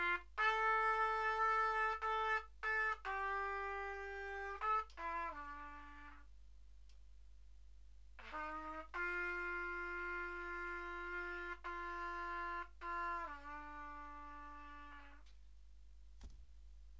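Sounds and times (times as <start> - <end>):
trumpet: 0.0 - 6.3, 8.2 - 15.3.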